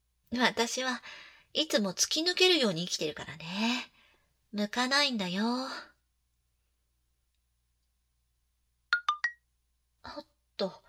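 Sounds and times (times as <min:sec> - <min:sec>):
speech: 0:00.3 - 0:03.9, 0:04.5 - 0:05.9, 0:10.1 - 0:10.8
incoming message notification chimes on a phone: 0:09.0 - 0:09.4.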